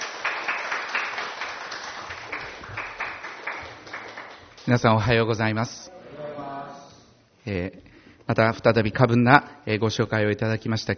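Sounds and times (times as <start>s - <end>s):
audience applause: 0.0s - 4.7s
speech: 4.7s - 5.9s, 7.4s - 10.9s.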